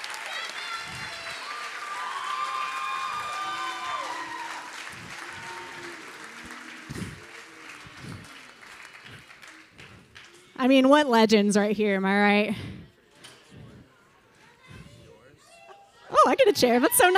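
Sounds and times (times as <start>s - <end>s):
whoops and cheers: 0.0s - 8.4s
audience applause: 0.0s - 10.5s
speech: 10.6s - 12.7s, 16.6s - 17.1s.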